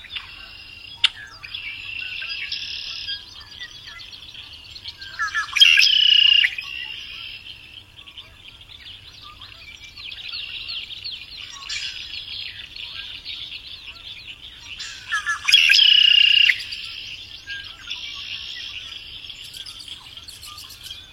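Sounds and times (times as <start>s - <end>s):
sabia sargento singing: 0.0s - 21.1s.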